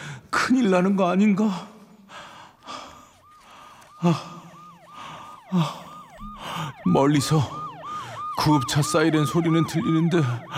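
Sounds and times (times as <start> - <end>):
speech: 0.4 - 1.7, 4.0 - 4.4, 5.5 - 5.8, 6.6 - 7.6, 8.4 - 10.5
labored gasping breaths: 2.1 - 6.8.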